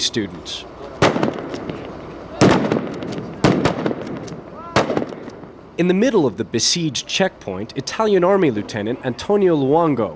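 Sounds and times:
speech: 0.0 - 0.7, 5.8 - 10.1
Italian airborne soldier's rifle firing blanks at a mock checkpoint: 1.0 - 5.6.

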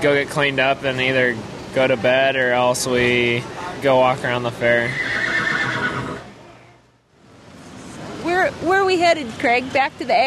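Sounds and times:
speech: 0.0 - 5.0, 8.9 - 10.2
Belgian workhorses neighing: 4.8 - 6.3.

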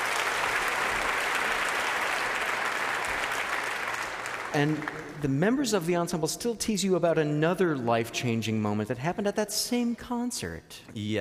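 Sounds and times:
people cheering: 0.0 - 5.2
speech: 4.5 - 11.1.

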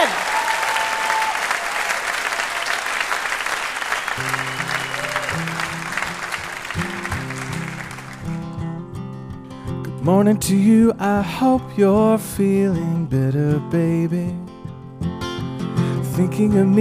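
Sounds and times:
audience round of applause: 0.0 - 8.6
speech: 10.1 - 14.4, 16.2 - 16.7.

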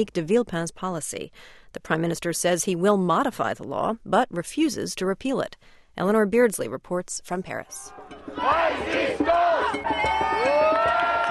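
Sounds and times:
speech: 0.0 - 10.7
protest march crowd chanting and shouting in unison: 7.7 - 11.2.

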